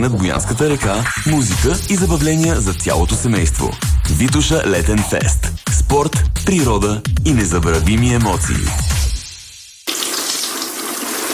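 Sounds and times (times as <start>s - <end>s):
speech: 0.0s - 9.1s
water poured over a Triano BG bathroom cabinet: 9.9s - 11.3s.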